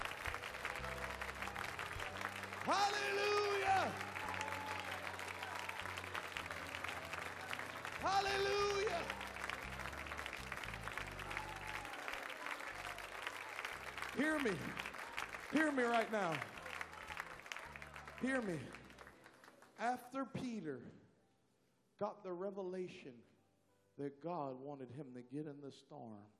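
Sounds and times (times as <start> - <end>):
audience clapping hands: 0.0 - 20.0
speech: 2.6 - 4.1, 8.0 - 9.2, 14.2 - 14.8, 15.5 - 16.5, 18.2 - 18.8, 19.8 - 21.0, 22.0 - 23.3, 24.0 - 26.3.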